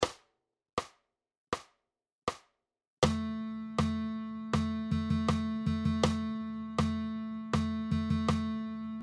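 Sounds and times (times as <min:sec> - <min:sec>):
guitar playing rhythm dictation exercises: 0:03.0 - 0:09.0.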